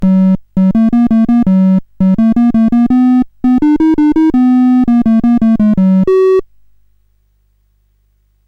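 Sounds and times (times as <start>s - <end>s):
CSG8580R5 sound chip game music: 0.0s - 6.4s.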